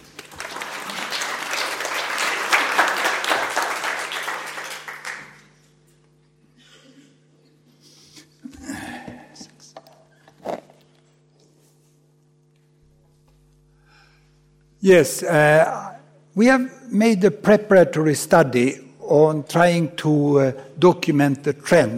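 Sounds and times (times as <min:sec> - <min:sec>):
audience applause: 0:00.0 - 0:05.6
speech: 0:14.8 - 0:21.9.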